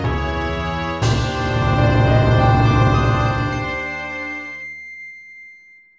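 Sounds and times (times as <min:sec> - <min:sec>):
boss clear jingle: 0:00.1 - 0:04.8.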